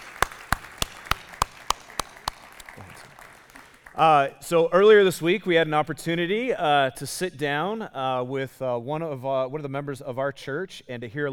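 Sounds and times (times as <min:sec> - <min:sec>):
church congregation applause welcoming a new student pastor: 0:00.0 - 0:04.3
speech: 0:04.0 - 0:11.3.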